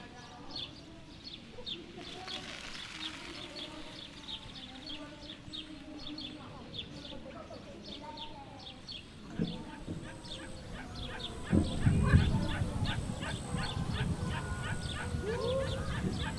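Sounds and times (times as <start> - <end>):
evening cicadas at sunset: 2.0 - 5.0, 8.7 - 16.3.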